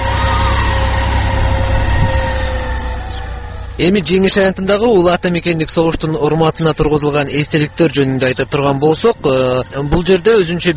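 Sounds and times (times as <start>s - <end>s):
special vehicle engine washing monuments on Victory Square: 0.0s - 10.7s
speech: 3.8s - 10.7s.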